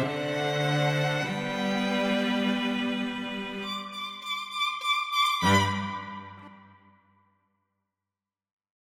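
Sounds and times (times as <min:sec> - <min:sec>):
string quartet: 0:00.0 - 0:06.7.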